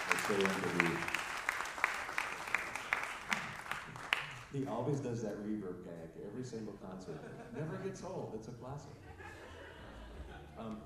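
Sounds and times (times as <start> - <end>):
audience applause: 0.0 - 4.7
speech: 0.3 - 1.2, 4.5 - 9.1, 10.6 - 10.8
laughter: 7.0 - 8.2, 8.9 - 10.8.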